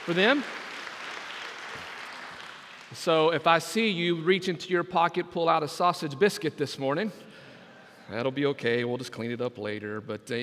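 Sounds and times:
speech: 0:00.0 - 0:00.6, 0:02.9 - 0:07.4, 0:08.1 - 0:10.4
crowd applauding: 0:00.0 - 0:03.6.

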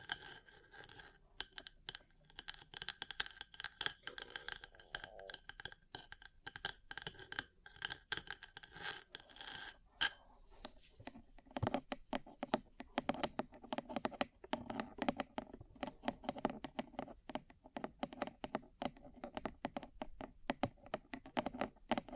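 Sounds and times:
tapping and scratching on ear-cleaning and massage tools: 0:00.0 - 0:22.1.

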